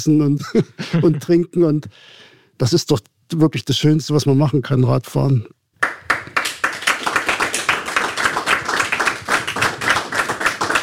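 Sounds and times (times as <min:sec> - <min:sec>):
speech: 0:00.0 - 0:06.0
audience applause: 0:05.8 - 0:10.8.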